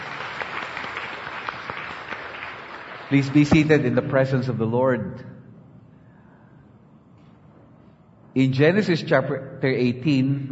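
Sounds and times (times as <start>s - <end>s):
church congregation applauding in praise of the Lord: 0.0s - 4.0s
speech: 3.1s - 5.3s, 8.4s - 10.5s.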